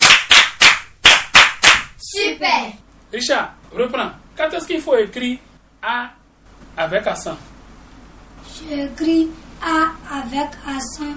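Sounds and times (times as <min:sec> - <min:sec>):
classroom group clapping in unison for a pupil: 0:00.0 - 0:02.0
speech: 0:02.6 - 0:06.2, 0:06.8 - 0:07.5, 0:08.6 - 0:11.1.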